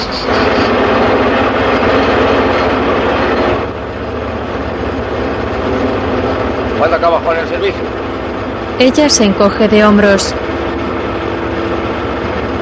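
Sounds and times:
tractor engine rumbling in a rural farm field: 0.0s - 12.5s
speech: 8.8s - 10.5s.

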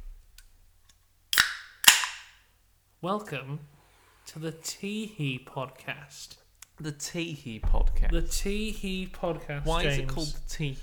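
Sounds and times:
beverage being opened with fizzing hiss: 1.3s - 2.3s
speech: 3.0s - 10.8s.

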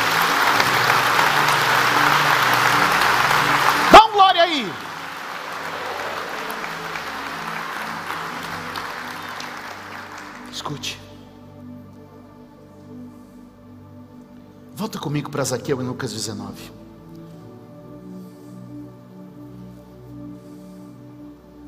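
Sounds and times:
audience applauding loudly: 0.0s - 10.9s
speech: 4.5s - 4.9s, 10.7s - 11.0s, 14.9s - 16.8s.

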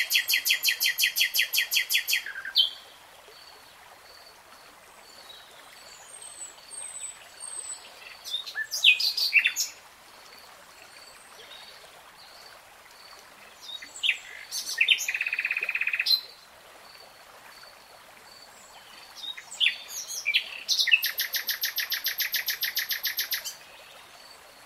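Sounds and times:
nightingale song: 0.0s - 2.9s, 5.2s - 9.8s, 13.6s - 16.3s, 18.7s - 24.0s.

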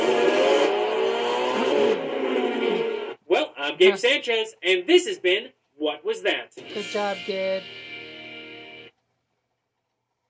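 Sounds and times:
drag race car engine roaring: 0.0s - 4.2s
speech: 3.7s - 7.8s.

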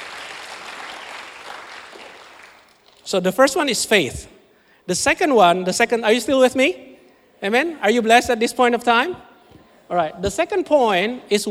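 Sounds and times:
audience clapping: 0.0s - 3.0s
speech: 3.1s - 9.3s, 9.9s - 11.4s.

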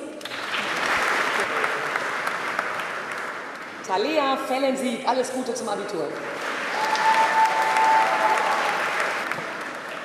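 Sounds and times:
audience applause: 0.2s - 3.9s, 6.2s - 10.0s
speech: 3.9s - 6.5s.

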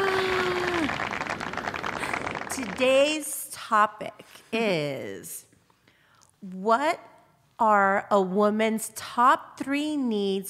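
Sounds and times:
crowd cheering wildly: 0.0s - 2.4s
speech: 2.6s - 5.5s, 6.4s - 10.4s.

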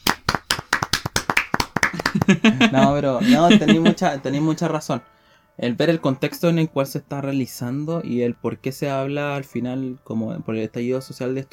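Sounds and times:
hand clapping: 0.0s - 2.5s
laughter: 1.9s - 4.6s
speech: 2.3s - 11.5s.

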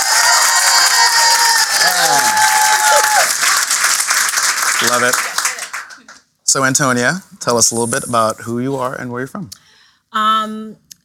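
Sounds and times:
audience applause: 0.0s - 6.2s
speech: 4.8s - 5.4s, 6.5s - 10.8s.

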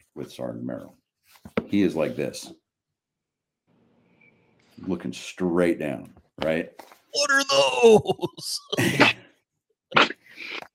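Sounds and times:
speech: 0.2s - 2.6s, 4.8s - 9.2s
sneeze: 9.9s - 10.4s.

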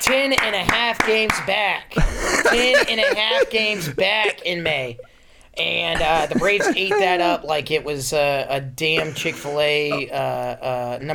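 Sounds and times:
sharp claps: 0.0s - 1.6s
speech: 0.1s - 11.1s
laughter: 2.0s - 5.1s, 6.0s - 7.5s, 9.0s - 10.1s.

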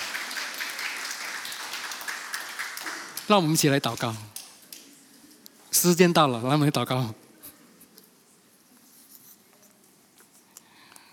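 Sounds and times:
audience clapping: 0.0s - 4.9s
speech: 3.3s - 4.4s, 5.8s - 7.2s.

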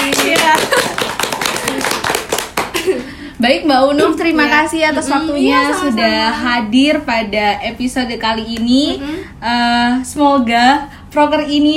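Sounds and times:
hand clapping: 0.0s - 3.1s
speech: 3.4s - 11.7s.

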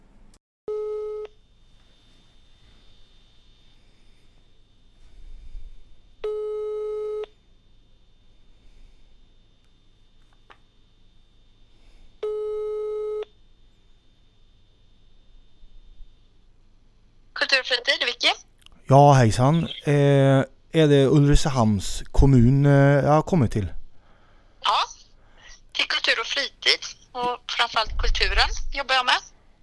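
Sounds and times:
telephone ringback tone: 0.7s - 1.4s, 6.2s - 7.3s, 12.2s - 13.3s
speech: 17.5s - 23.8s, 26.4s - 29.3s.

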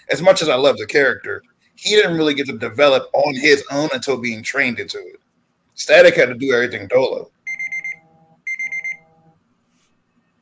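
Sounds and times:
speech: 0.0s - 5.2s, 5.8s - 7.4s
low steady hum: 0.0s - 10.4s
debate timer alarm beeping: 7.5s - 9.4s.

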